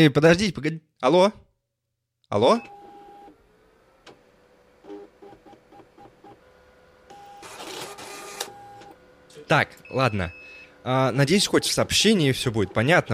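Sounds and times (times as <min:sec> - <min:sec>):
speech: 0:00.0 - 0:01.4, 0:02.3 - 0:02.8, 0:09.5 - 0:13.1
fax machine receiving a transmission and printing pages: 0:02.6 - 0:03.4, 0:04.1 - 0:13.1.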